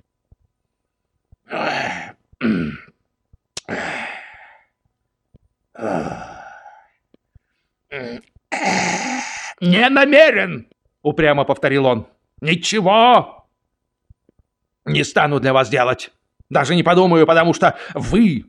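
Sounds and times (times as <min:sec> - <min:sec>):
person imitating a field chaplain hiccuping: 0:07.9 - 0:09.5
speech: 0:09.6 - 0:13.4, 0:14.8 - 0:18.4.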